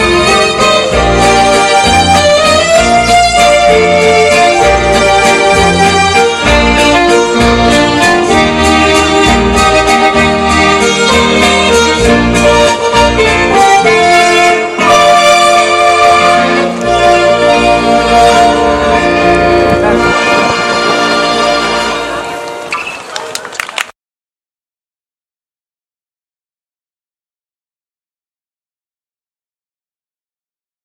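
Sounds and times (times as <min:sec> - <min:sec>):
violin lead: 0:00.0 - 0:23.2.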